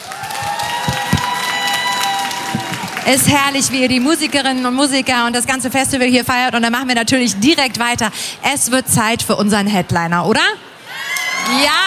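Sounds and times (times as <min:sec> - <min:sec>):
audience applause at a music festival: 0:00.0 - 0:05.0
speech: 0:03.1 - 0:10.7, 0:11.5 - 0:11.8.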